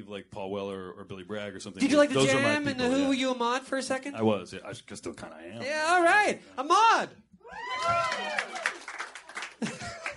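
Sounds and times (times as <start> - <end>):
speech: 0.0 - 8.7
audience applause: 7.6 - 10.1
chuckling: 9.6 - 10.1.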